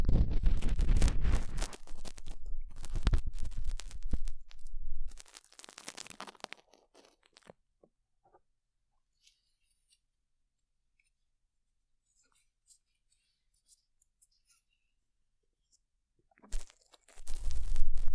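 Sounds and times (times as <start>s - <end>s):
ear cleaning sounds: 0.1s - 7.5s, 16.5s - 18.0s.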